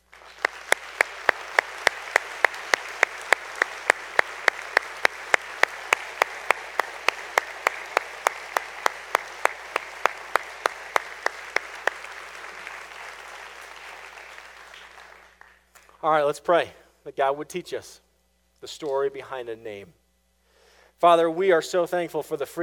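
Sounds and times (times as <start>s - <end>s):
audience applauding veterans: 0.0s - 16.0s
speech: 16.0s - 18.0s, 18.6s - 20.0s, 21.0s - 22.6s.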